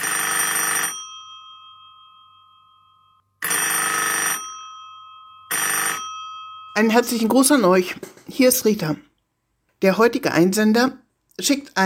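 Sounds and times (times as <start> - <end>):
old-style telephone bell ringing: 0.0 - 7.9
speech: 6.8 - 9.1, 9.8 - 11.8.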